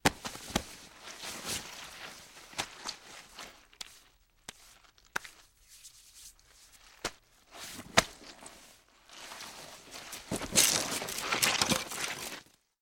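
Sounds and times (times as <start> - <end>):
body falling in mud: 0.0 - 3.6, 7.0 - 12.6.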